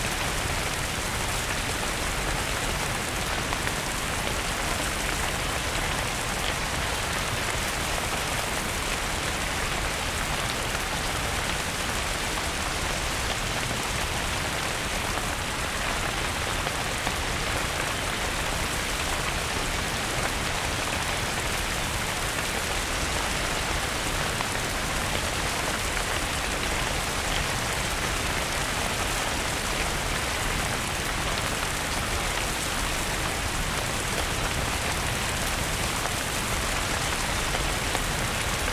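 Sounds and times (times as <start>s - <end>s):
rainstorm: 0.0s - 38.7s.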